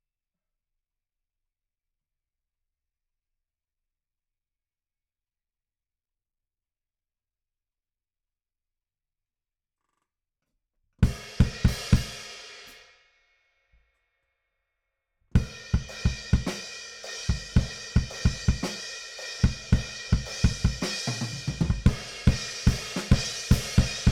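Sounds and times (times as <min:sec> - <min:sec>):
bass drum: 0:15.4 - 0:16.7, 0:17.3 - 0:18.8, 0:19.4 - 0:24.1.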